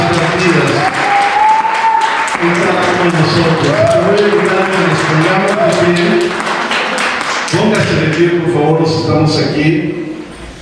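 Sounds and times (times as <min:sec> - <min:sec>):
audience applause: 0:00.0 - 0:08.4
speech: 0:03.1 - 0:06.4, 0:07.7 - 0:10.1.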